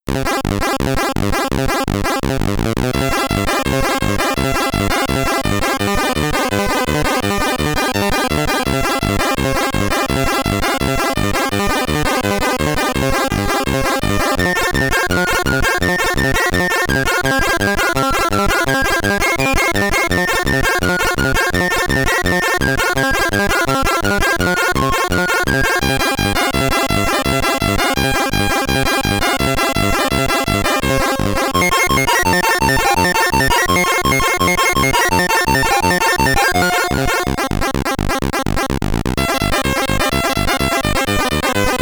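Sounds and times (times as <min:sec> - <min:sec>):
SID stereo bonus level chiptune music: 0:00.1 - 0:41.8.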